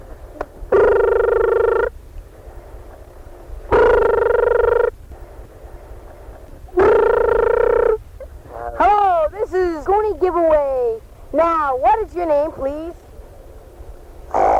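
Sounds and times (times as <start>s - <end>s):
quiet hiss: 0.0s - 14.5s
telephone ringing tone: 0.7s - 1.9s, 3.7s - 5.0s, 6.8s - 8.0s
speech: 12.0s - 13.0s.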